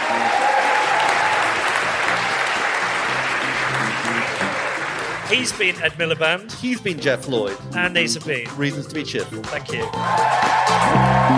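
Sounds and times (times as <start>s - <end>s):
audience round of applause: 0.0s - 5.8s, 9.9s - 11.3s
speech: 5.3s - 11.3s.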